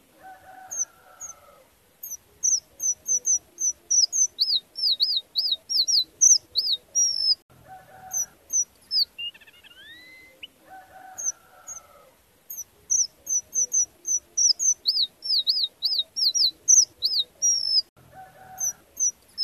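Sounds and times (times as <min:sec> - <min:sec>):
strawberry finch calling: 0:00.7 - 0:01.4, 0:02.0 - 0:07.4, 0:08.0 - 0:11.9, 0:12.5 - 0:17.9, 0:18.5 - 0:19.4.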